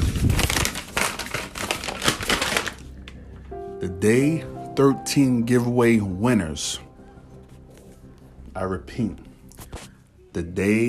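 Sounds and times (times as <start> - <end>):
paper envelope being torn open: 0.0 - 3.2
speech: 3.8 - 6.9, 8.6 - 9.3, 10.3 - 10.8.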